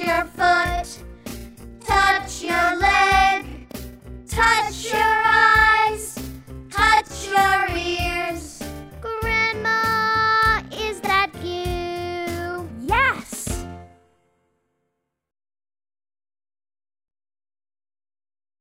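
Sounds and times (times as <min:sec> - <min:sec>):
slow song: 0:00.0 - 0:12.8.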